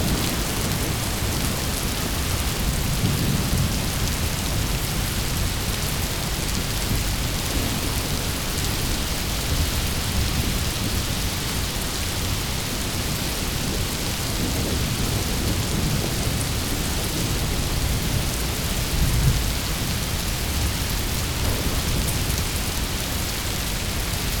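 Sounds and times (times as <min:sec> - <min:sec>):
rain: 0:00.0 - 0:24.3
thunder rolling: 0:21.3 - 0:24.0.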